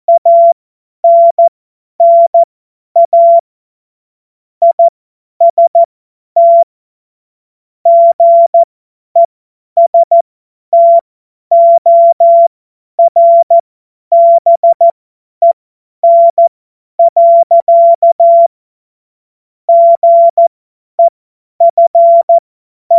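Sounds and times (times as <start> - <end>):
Morse code course tones: 0.1 - 1.4, 2.0 - 2.4, 3.0 - 3.4, 4.6 - 6.6, 7.9 - 8.6, 10.8 - 16.4, 17.0 - 18.5, 19.7 - 22.9.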